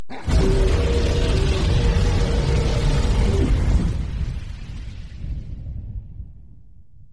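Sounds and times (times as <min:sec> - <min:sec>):
dragon flame effect: 0:00.1 - 0:06.6.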